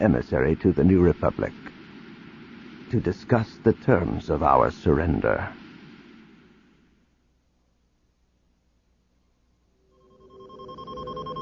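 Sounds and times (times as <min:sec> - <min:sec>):
speech: 0:00.0 - 0:01.7, 0:02.9 - 0:05.6
soft hiss: 0:00.0 - 0:11.4
spaceship console electronic proximity beep: 0:10.0 - 0:11.4.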